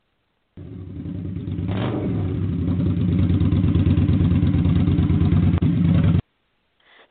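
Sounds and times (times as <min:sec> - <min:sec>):
motorcycle engine revving around a curve: 0:00.6 - 0:06.2.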